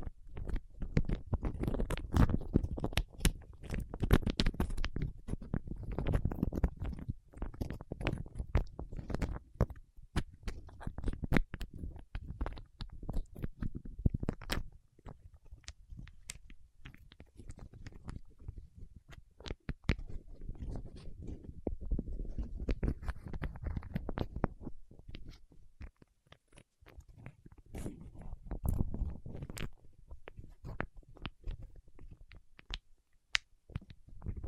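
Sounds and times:
fingertips in wax crackling: 0.0s - 34.4s.

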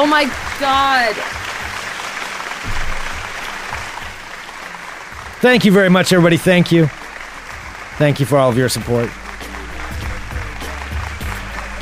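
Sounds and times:
speech: 0.0s - 1.4s, 5.4s - 7.0s, 8.0s - 9.2s
audience applause: 0.0s - 11.8s.

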